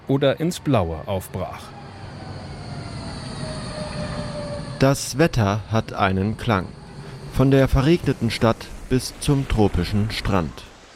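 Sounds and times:
speech: 0:00.1 - 0:01.8, 0:04.8 - 0:06.8, 0:07.4 - 0:10.7
tram rolling on rails: 0:00.6 - 0:10.9
tram wheel squeal: 0:01.2 - 0:08.6.

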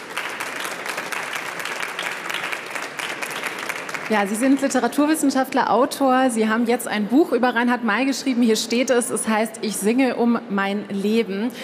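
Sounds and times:
studio audience applause: 0:00.0 - 0:05.1
speech: 0:04.1 - 0:11.6.

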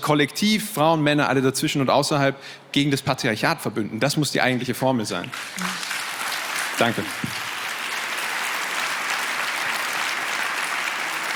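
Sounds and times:
speech: 0:00.0 - 0:05.9, 0:06.8 - 0:07.4
audience applause: 0:05.3 - 0:11.3.

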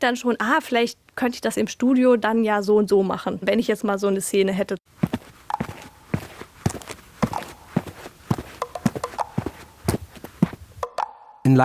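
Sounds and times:
speech: 0:00.0 - 0:05.7
shoe footsteps on a floor: 0:05.0 - 0:10.8.

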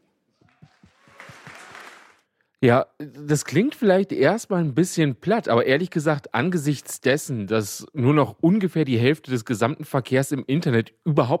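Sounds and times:
audience applause: 0:00.4 - 0:02.2
speech: 0:02.6 - 0:11.3.

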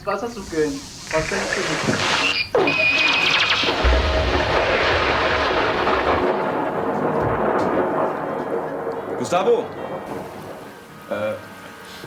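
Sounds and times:
speech: 0:00.0 - 0:03.0, 0:09.3 - 0:10.4, 0:11.1 - 0:12.0
thunder from a nearby lightning strike: 0:03.0 - 0:11.6.

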